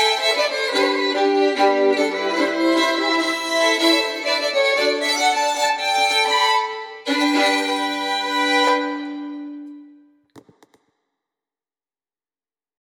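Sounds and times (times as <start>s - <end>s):
bagpipe playing a schottische: 0.0s - 9.8s.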